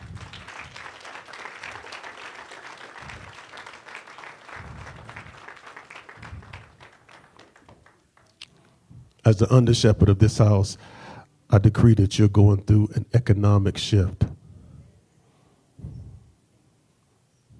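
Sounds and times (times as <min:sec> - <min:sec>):
crowd clapping: 0:00.0 - 0:08.7
speech: 0:09.3 - 0:14.2.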